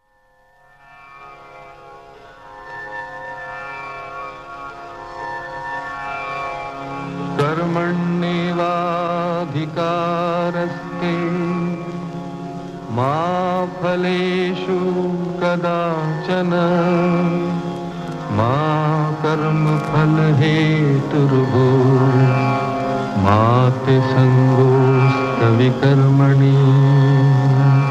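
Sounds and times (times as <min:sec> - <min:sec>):
person chanting a shloka: 0:07.4 - 0:27.8.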